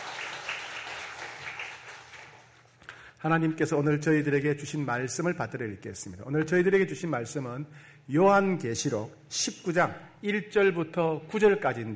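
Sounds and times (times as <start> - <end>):
audience applause: 0.0 - 2.6
speech: 3.2 - 11.9.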